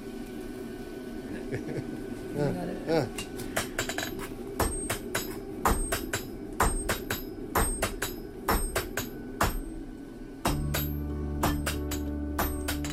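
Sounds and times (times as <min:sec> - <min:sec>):
speech: 0:01.5 - 0:03.5
blacksmiths hammering metal together in rhythm: 0:03.6 - 0:12.9.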